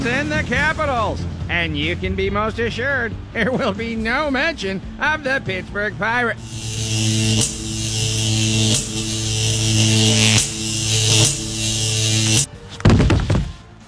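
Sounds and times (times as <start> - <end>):
speech: 0.0 - 7.6
electric shock buzzing: 6.4 - 12.5.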